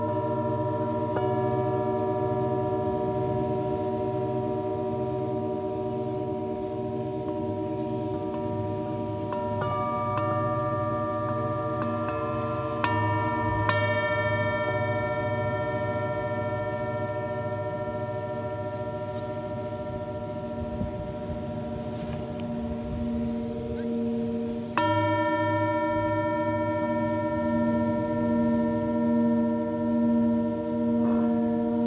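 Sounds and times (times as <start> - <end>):
singing bowls ringing in a sound healing session in Mexico: 0.0 - 31.8.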